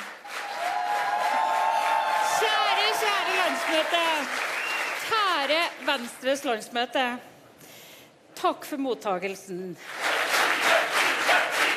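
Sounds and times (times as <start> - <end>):
audience standing and applauding: 0.0 - 6.2, 9.8 - 11.7
speech: 3.6 - 4.5, 5.1 - 7.3, 8.4 - 10.1.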